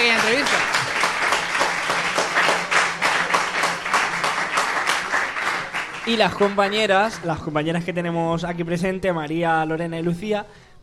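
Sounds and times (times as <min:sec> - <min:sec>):
audience applause: 0:00.0 - 0:07.5
speech: 0:06.1 - 0:10.7.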